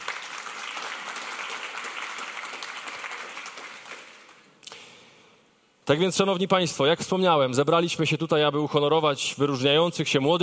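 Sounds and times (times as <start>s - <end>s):
audience applause: 0.0s - 4.4s
speech: 5.9s - 10.4s.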